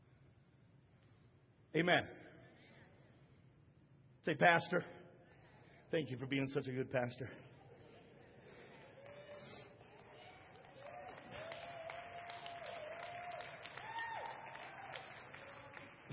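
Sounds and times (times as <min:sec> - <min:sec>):
speech: 0:01.7 - 0:02.2, 0:04.2 - 0:05.0, 0:05.9 - 0:07.5
audience applause: 0:08.5 - 0:16.1.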